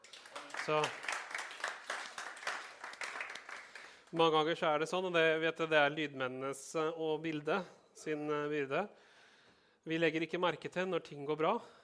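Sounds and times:
audience applause: 0.0s - 4.1s
speech: 0.7s - 1.0s, 4.1s - 9.0s, 9.8s - 11.8s.

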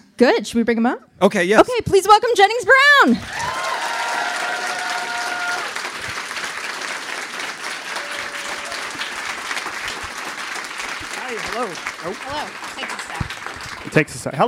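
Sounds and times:
speech: 0.2s - 3.6s, 11.6s - 13.0s, 13.9s - 14.4s
crowd applauding: 3.2s - 14.4s.

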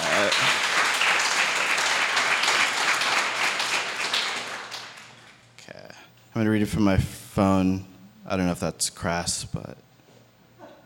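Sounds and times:
crowd applause: 0.0s - 5.4s
speech: 6.4s - 9.9s.

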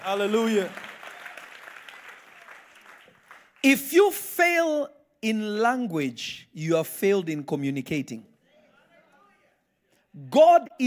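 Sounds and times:
speech: 0.0s - 0.9s, 3.6s - 8.3s, 10.2s - 10.8s
audience clapping: 0.0s - 3.8s.

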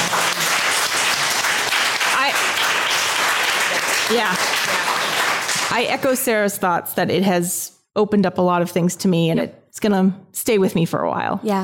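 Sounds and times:
audience applause: 0.0s - 5.9s
speech: 4.1s - 4.8s, 5.7s - 11.6s.

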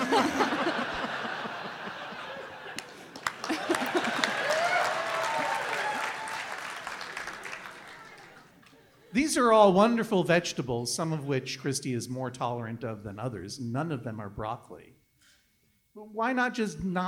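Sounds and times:
scattered laughter: 0.0s - 4.8s
audience applause: 0.0s - 8.8s
people cheering: 0.0s - 8.9s
speech: 0.2s - 0.6s, 9.4s - 15.0s, 16.0s - 17.0s.

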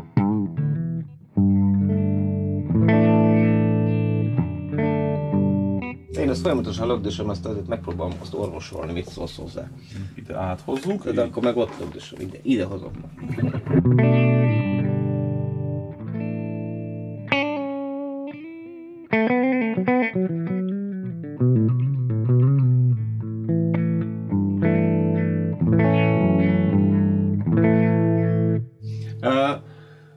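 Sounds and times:
distorted Les Paul electric guitar through amp: 0.0s - 10.2s, 12.9s - 30.0s
speech: 6.3s - 14.6s.

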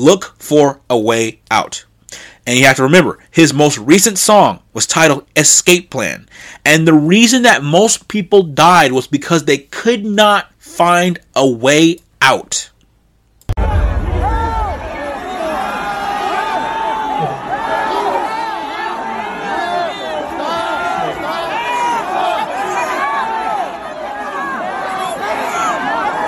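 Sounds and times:
speech: 0.0s - 12.7s
people screaming for help: 13.6s - 26.2s.

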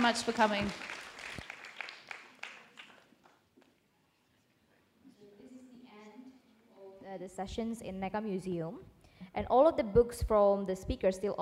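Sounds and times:
speech: 0.0s - 1.0s, 7.2s - 11.4s
audience applause: 0.0s - 3.4s.

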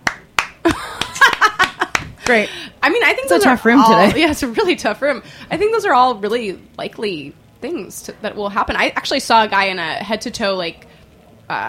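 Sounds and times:
few people clapping: 0.0s - 2.5s
speech: 2.3s - 10.9s, 11.5s - 11.6s.

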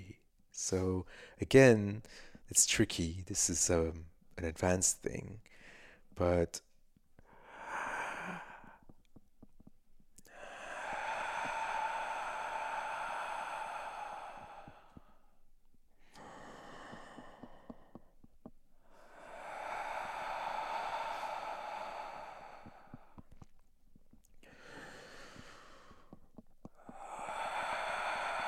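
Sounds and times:
speech: 0.6s - 5.6s, 6.2s - 6.7s
slow deep breathing during meditation: 1.0s - 1.4s, 2.0s - 2.5s, 5.5s - 6.2s, 7.2s - 28.4s.

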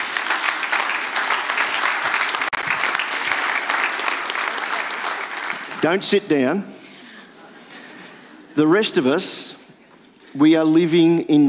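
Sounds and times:
audience applause: 0.0s - 6.0s
speech: 5.8s - 6.8s, 8.6s - 9.6s, 10.3s - 11.4s.

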